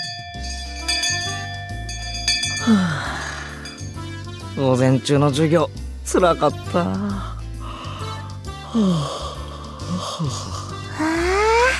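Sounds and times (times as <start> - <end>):
speech: 2.6 - 3.1, 4.6 - 7.3, 8.7 - 9.2, 10.2 - 10.6
big yawn: 2.6 - 3.6, 7.0 - 11.7.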